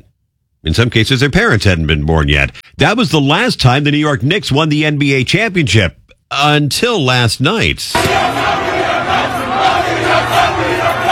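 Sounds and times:
speech: 0.6s - 10.4s
crowds celebrating in the streets: 8.0s - 11.1s.

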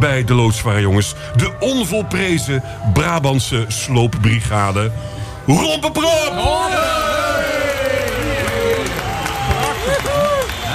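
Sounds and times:
speech: 0.0s - 7.2s
crowd applauding: 6.4s - 10.7s.

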